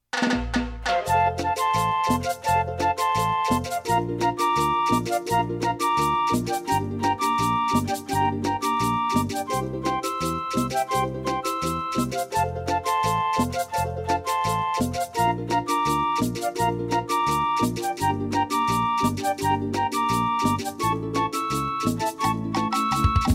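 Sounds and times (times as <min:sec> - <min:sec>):
cumbia music: 0:00.1 - 0:23.3.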